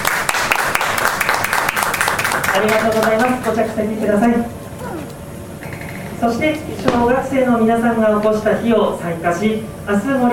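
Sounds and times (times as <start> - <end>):
audience applause: 0.0 - 3.7
speech: 2.6 - 4.6, 6.2 - 10.3.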